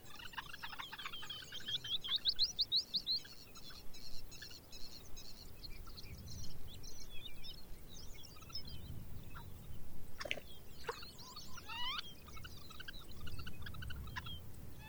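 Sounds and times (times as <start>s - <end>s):
Arctic birds ptarmigan longspurs and bluethroat calling: 0.0s - 14.8s
low rumbling wind: 5.0s - 14.8s.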